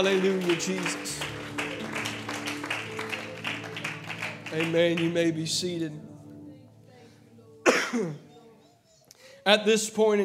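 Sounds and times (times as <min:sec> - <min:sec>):
speech: 0:00.0 - 0:01.5, 0:04.5 - 0:06.1, 0:07.9 - 0:08.2, 0:09.4 - 0:10.2
audience clapping hands: 0:00.0 - 0:05.6.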